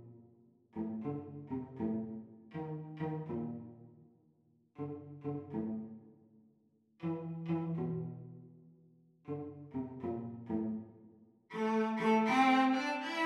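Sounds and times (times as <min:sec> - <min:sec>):
cello duet playalong at practice speed: 0:00.8 - 0:04.0, 0:04.8 - 0:06.0, 0:07.0 - 0:08.6, 0:09.2 - 0:13.2.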